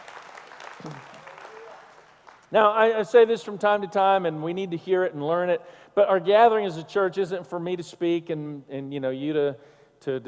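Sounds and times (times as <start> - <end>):
audience clapping: 0.0 - 2.5
speech: 0.8 - 1.2, 2.5 - 10.2.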